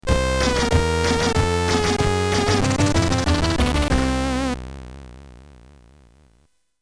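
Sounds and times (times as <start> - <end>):
Commodore 64 game over jingle: 0.1 - 4.5.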